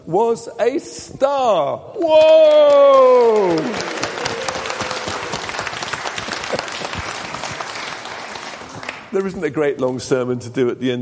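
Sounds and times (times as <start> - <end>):
speech: 0.1 - 4.1, 9.2 - 11.0
audience applause: 2.2 - 9.3.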